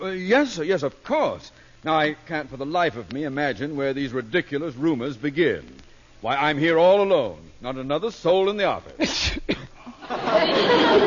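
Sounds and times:
speech: 0.0s - 9.5s
person sneezing: 9.0s - 9.9s
laughter: 9.8s - 11.0s.

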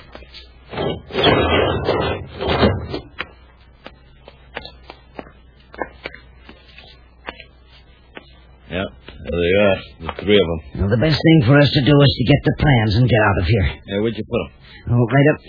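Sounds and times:
door opening: 0.7s - 3.1s
speech: 10.3s - 15.4s.

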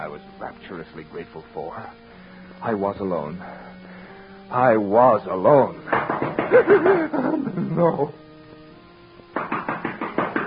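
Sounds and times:
speech: 0.0s - 3.9s, 4.5s - 8.2s
knocking on a door: 5.9s - 6.8s, 9.3s - 10.4s
laughter: 5.9s - 8.2s.

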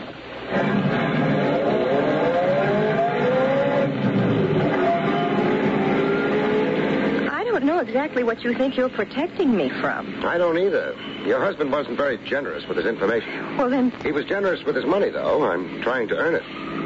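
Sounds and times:
car engine revving and pulling away: 0.4s - 7.3s
speech: 7.9s - 16.7s.

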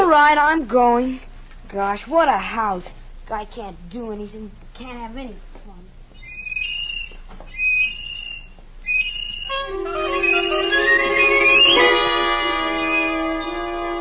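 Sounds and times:
speech: 0.1s - 5.8s
tin whistle being blown: 6.6s - 13.9s.

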